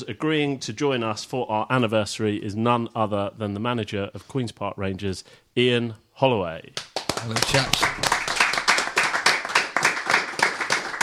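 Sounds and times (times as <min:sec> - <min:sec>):
speech: 0:00.0 - 0:08.2
hand clapping: 0:06.8 - 0:11.0.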